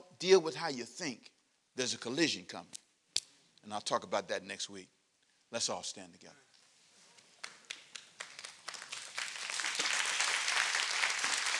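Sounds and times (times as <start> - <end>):
speech: 0.2 - 2.8, 3.6 - 6.5
audience applauding: 7.4 - 11.5.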